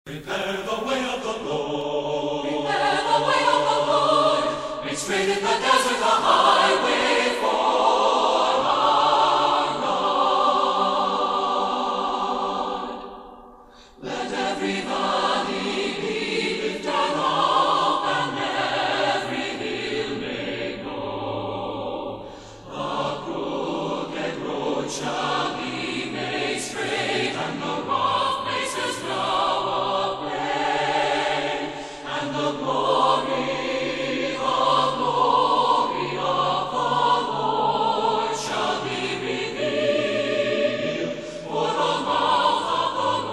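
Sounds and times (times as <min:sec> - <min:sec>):
choir singing in English: 0:00.1 - 0:43.3.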